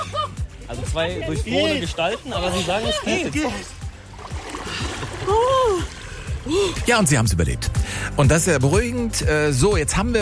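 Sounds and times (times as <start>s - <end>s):
laughter: 0.0s - 3.8s
speech: 0.7s - 3.8s, 5.3s - 10.2s
people plunging into ice-cold water with a splash: 3.4s - 7.3s
person crying out: 5.2s - 6.8s.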